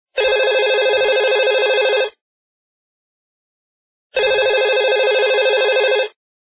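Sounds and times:
old cellular phone sound: 0:00.2 - 0:02.2, 0:04.2 - 0:06.2.

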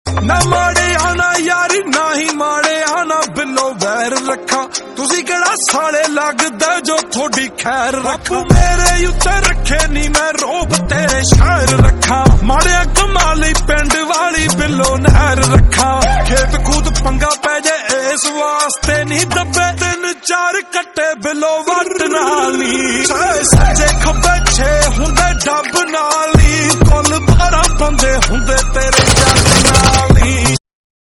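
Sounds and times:
lofi music: 0:00.1 - 0:30.6.

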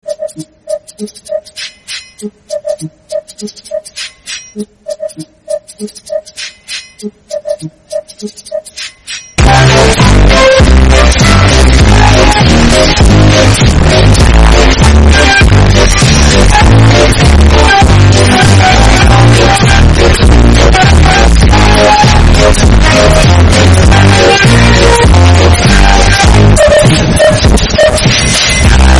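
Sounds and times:
loud distorted earrape background music: 0:09.4 - 0:28.9.

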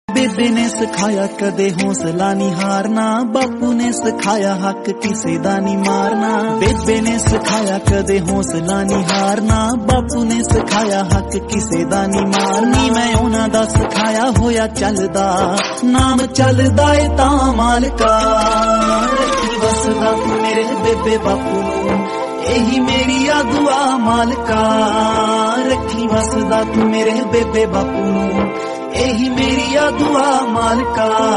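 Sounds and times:
Haryanvi folk song: 0:00.1 - 0:31.3.

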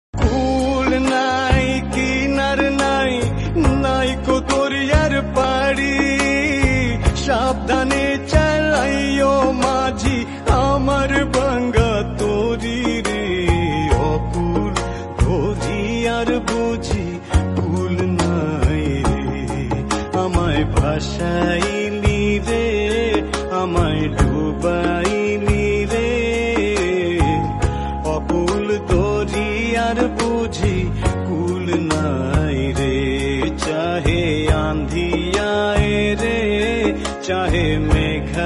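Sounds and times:
sad Bengali instrumental music: 0:00.2 - 0:38.4.

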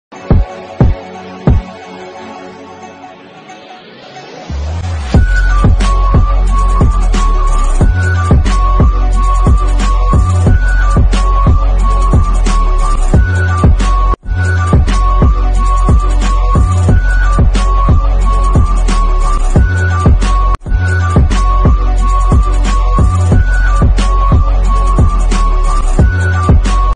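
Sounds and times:
English ringtone background music: 0:00.1 - 0:26.9.

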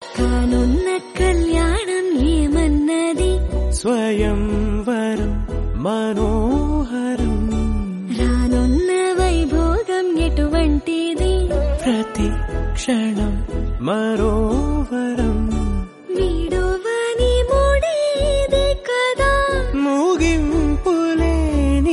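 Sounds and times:
Telugu song: 0:00.0 - 0:21.9.

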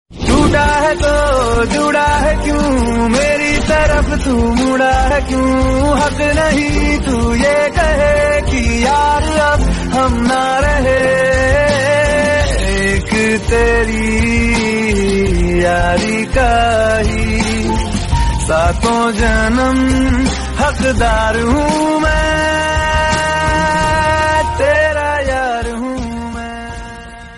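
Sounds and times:
romantic Hindi song: 0:00.1 - 0:27.3.

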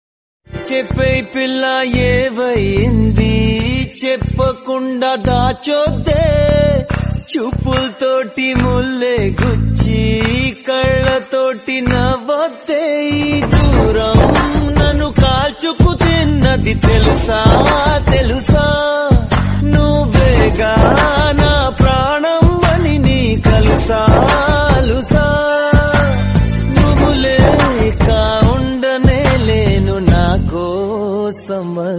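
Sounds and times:
old Telugu love song: 0:00.5 - 0:31.9.

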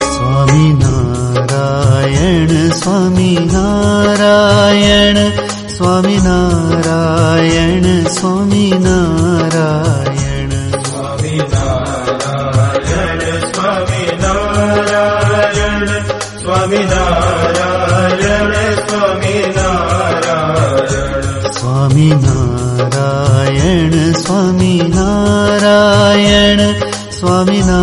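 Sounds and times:
devotional song: 0:00.0 - 0:27.8.

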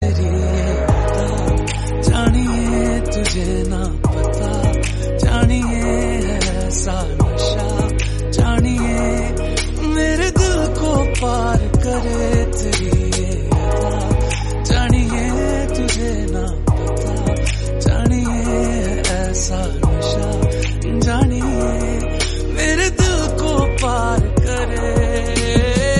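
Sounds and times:
Hindi song: 0:00.0 - 0:25.9.

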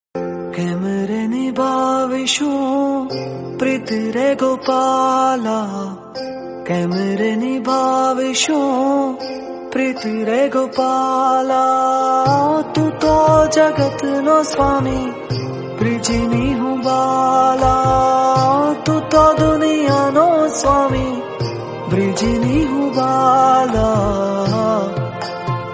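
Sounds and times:
old Gujarati song: 0:00.5 - 0:25.7.

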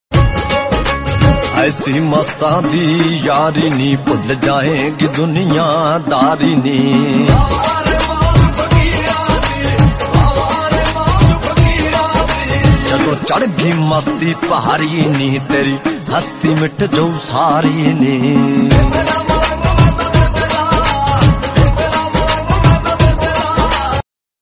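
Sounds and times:
Punjabi music: 0:00.1 - 0:24.0.

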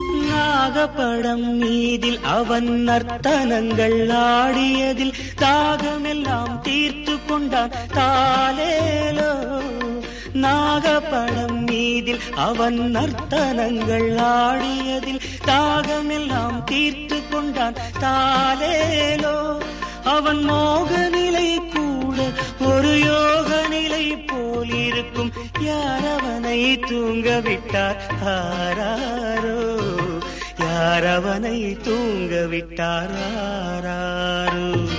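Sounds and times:
Tamil song: 0:00.0 - 0:34.9.

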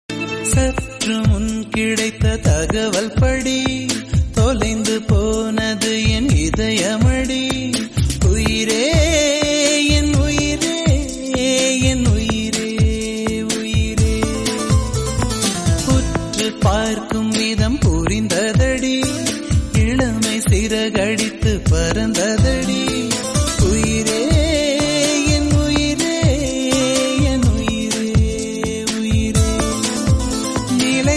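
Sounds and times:
Tamil song: 0:00.1 - 0:31.1.

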